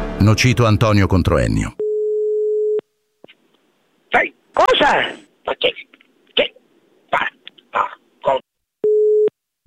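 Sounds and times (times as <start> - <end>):
speech: 0.2 - 1.8, 4.1 - 8.5
telephone busy tone: 1.8 - 2.8, 8.8 - 9.3.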